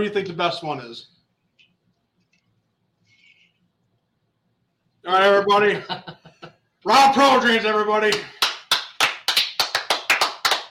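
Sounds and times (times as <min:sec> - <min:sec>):
speech: 0:00.0 - 0:01.1, 0:05.0 - 0:06.2, 0:06.8 - 0:08.4
applause: 0:08.1 - 0:10.6.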